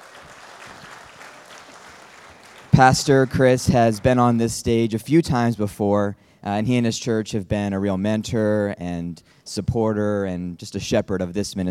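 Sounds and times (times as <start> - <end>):
audience applause welcoming a pastor at a church service: 0.0 - 4.4
speech: 2.8 - 11.6.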